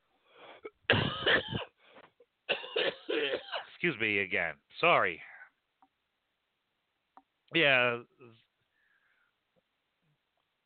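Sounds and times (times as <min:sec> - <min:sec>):
coughing: 0:00.5 - 0:01.8, 0:02.5 - 0:03.8
speech: 0:03.8 - 0:05.3, 0:07.5 - 0:08.4.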